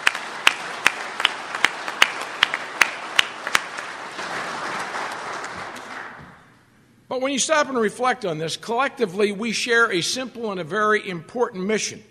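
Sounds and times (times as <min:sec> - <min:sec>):
audience round of applause: 0:00.0 - 0:06.4
speech: 0:07.2 - 0:12.0.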